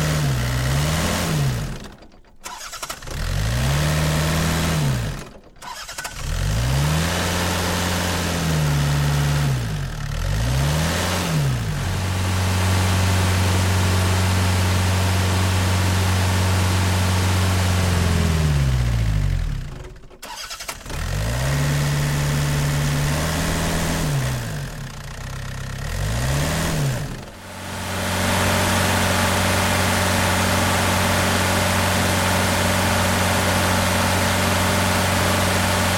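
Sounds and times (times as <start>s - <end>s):
excavator: 0.0s - 35.9s.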